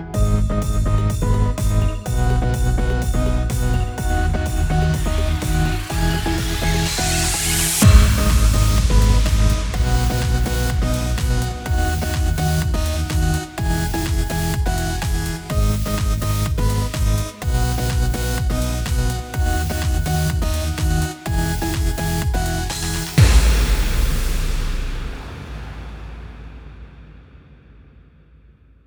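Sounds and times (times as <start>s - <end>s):
vibrating electronic chord sound layer: 0.1s - 25.3s.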